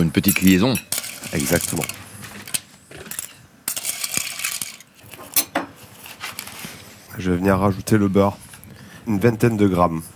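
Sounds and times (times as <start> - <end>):
speech: 0.0 - 2.0, 7.2 - 8.4, 9.0 - 10.1
cooked cockles clattering against a metal pan: 0.2 - 5.6.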